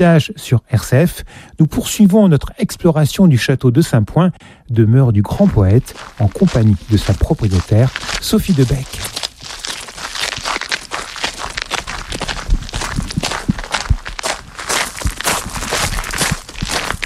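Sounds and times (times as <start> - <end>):
speech: 0.0 - 9.2
footsteps on the narrow tower staircase at the Château de Saint-Point: 5.8 - 17.0.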